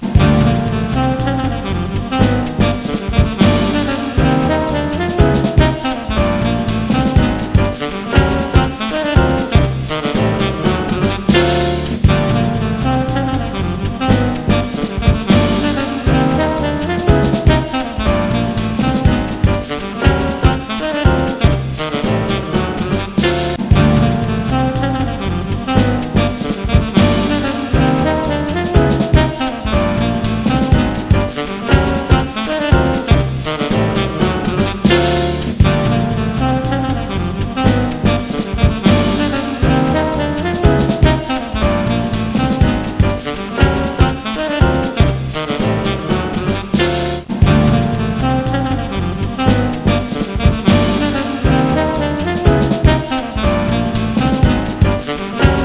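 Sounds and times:
jazz music: 0.0 - 55.6.

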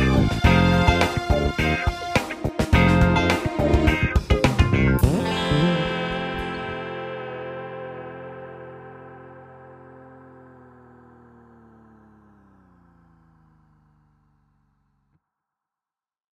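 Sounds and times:
disco music: 0.0 - 9.4.

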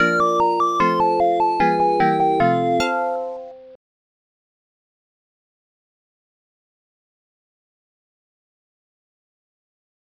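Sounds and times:
tune: 0.0 - 3.8.

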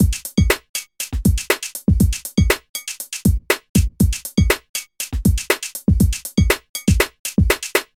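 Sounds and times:
music beat: 0.0 - 7.9.

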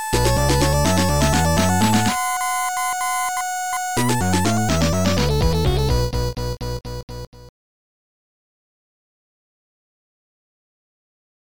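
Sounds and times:
Game Boy sounds: 0.1 - 6.9.

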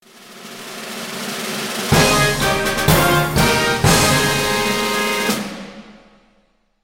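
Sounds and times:
game win jingle: 1.9 - 5.6.

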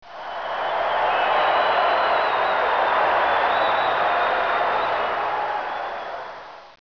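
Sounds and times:
crowd cheering: 0.0 - 6.8.

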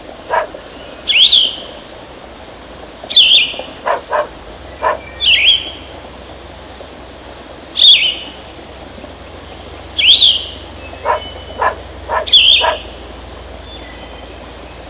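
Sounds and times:
forest ambience: 0.0 - 14.8.

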